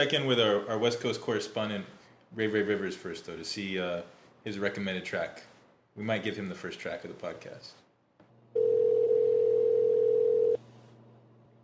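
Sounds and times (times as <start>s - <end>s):
speech: 0.0s - 7.8s
low hum: 0.0s - 11.6s
outgoing phone call ringing tone: 8.6s - 10.6s.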